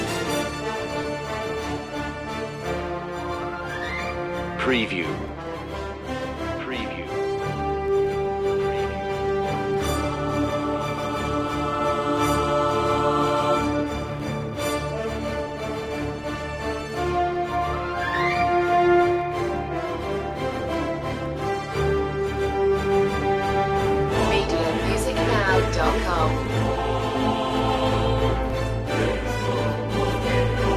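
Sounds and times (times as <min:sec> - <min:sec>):
choir: 0:00.0 - 0:04.0, 0:09.1 - 0:15.7, 0:23.0 - 0:30.7
brass: 0:00.0 - 0:30.7
strings: 0:00.0 - 0:30.7.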